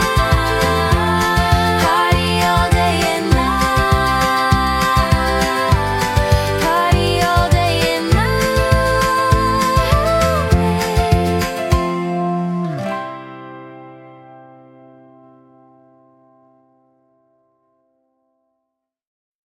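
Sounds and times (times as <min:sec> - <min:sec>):
birthday song: 0:00.0 - 0:14.6.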